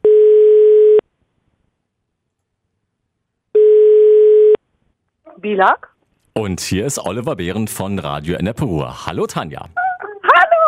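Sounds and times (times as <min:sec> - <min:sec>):
telephone ringing tone of outgoing call: 0:00.0 - 0:01.0, 0:03.6 - 0:04.6
speech: 0:05.4 - 0:09.8.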